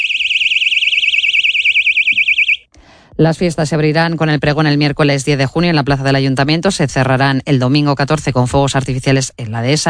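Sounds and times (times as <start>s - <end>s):
personal safety alarm shrieking: 0.0s - 2.7s
speech: 3.2s - 9.8s.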